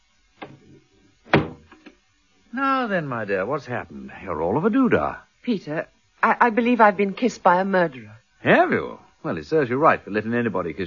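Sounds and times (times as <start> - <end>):
wooden door being closed: 0.4 - 2.0
speech: 2.5 - 10.8.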